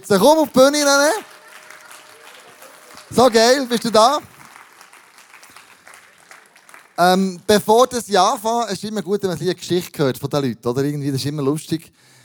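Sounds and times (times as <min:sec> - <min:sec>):
speech: 0:00.0 - 0:01.3, 0:03.1 - 0:04.3, 0:07.0 - 0:12.1
audience applause: 0:00.2 - 0:07.6.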